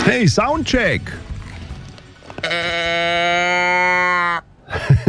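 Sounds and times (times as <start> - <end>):
speech: 0.1 - 1.3, 2.4 - 3.2
cow moo toy can being tipped: 2.4 - 4.5
laughter: 4.7 - 5.0.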